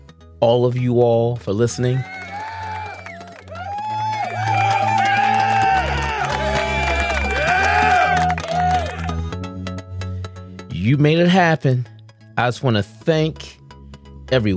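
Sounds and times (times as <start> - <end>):
booming bass-heavy backing: 0.0 - 14.5
speech: 0.4 - 2.2, 10.9 - 13.5, 14.3 - 14.5
crowd cheering and whooping: 1.9 - 9.3
scattered clapping: 2.2 - 9.1.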